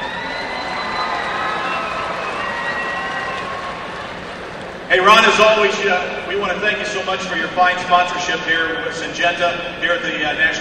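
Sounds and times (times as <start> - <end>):
audience applause: 0.0 - 4.9
speech: 4.9 - 10.5.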